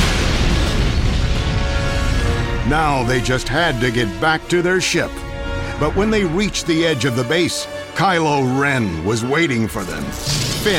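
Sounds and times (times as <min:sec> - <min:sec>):
cooling device on Starkiller Base exploding: 0:00.0 - 0:03.9
speech: 0:02.7 - 0:05.2, 0:05.8 - 0:10.7.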